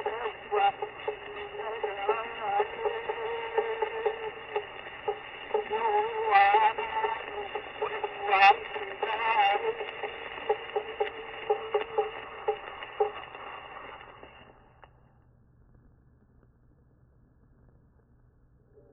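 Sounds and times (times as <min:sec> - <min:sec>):
Hawaiian name chant for a chiefess: 0:00.0 - 0:13.1.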